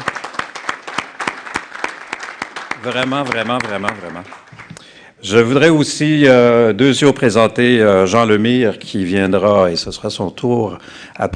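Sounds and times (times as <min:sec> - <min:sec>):
audience applause: 0:00.0 - 0:04.8
speech: 0:02.8 - 0:04.6, 0:05.2 - 0:11.3.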